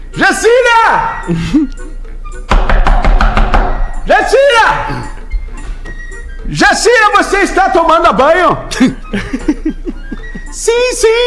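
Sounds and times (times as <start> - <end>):
speech: 0.2 - 1.9, 6.5 - 9.6, 10.6 - 11.2
knocking on a bathroom door: 2.5 - 4.0
laughter: 8.7 - 10.7.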